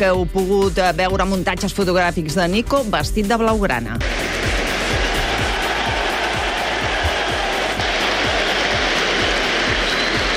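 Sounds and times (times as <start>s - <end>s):
speech: 0.0s - 4.5s
rhythmic low thumps: 0.0s - 10.3s
stadium crowd ovation for football player Nico Williams at San Mamés: 4.0s - 10.3s.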